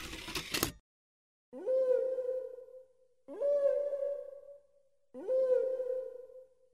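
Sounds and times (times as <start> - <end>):
whale song: 1.6 - 6.7.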